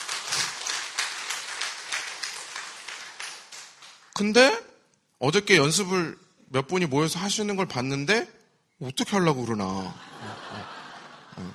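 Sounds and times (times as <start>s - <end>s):
audience applause: 0.0s - 4.2s
speech: 4.2s - 4.6s, 5.2s - 10.1s
laughter: 9.8s - 11.5s.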